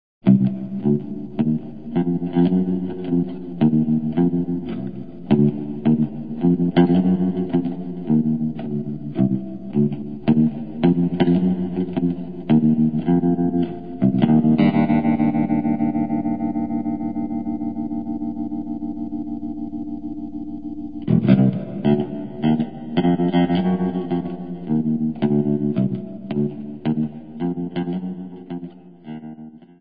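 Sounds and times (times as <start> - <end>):
score music sample: 0.3 - 29.4.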